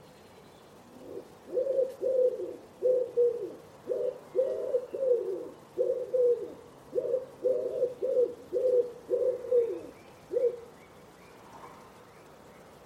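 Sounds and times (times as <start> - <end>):
Common Wood Pigeon cooing: 0.8 - 10.8.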